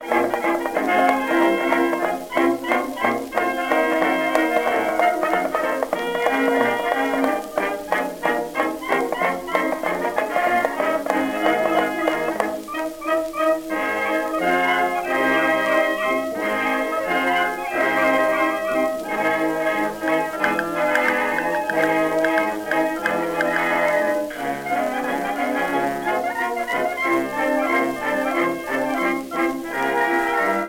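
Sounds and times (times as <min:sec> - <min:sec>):
Chinese jukebox blues music: 0:00.0 - 0:30.6.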